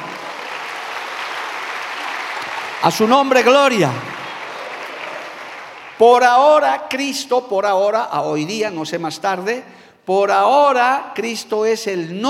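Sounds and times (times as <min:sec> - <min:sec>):
audience applauding: 0:00.0 - 0:06.6
speech: 0:02.8 - 0:04.2, 0:06.0 - 0:12.2.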